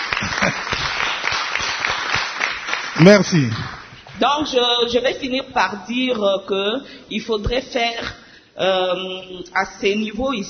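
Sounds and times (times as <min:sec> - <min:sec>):
men in an audience at a talk applauding: 0:00.0 - 0:03.9
speech: 0:03.0 - 0:10.4.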